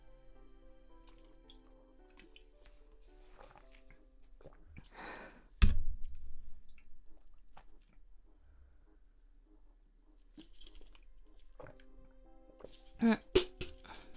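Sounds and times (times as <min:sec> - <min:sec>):
slurping the last sips of sake: 0:00.4 - 0:05.5, 0:10.3 - 0:14.1
speech: 0:13.0 - 0:13.2.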